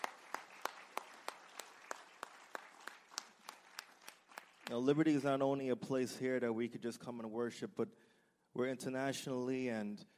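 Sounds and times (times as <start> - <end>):
audience round of applause: 0.0 - 4.9
speech: 4.7 - 10.1.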